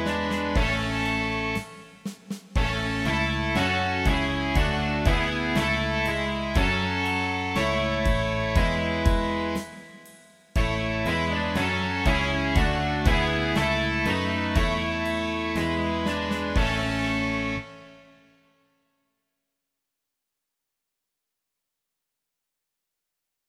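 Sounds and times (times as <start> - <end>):
rock music: 0.0 - 18.1.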